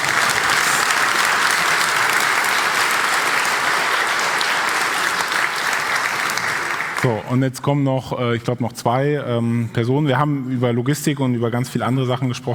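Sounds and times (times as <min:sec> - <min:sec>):
applause: 0:00.0 - 0:07.3
speech: 0:07.0 - 0:12.5.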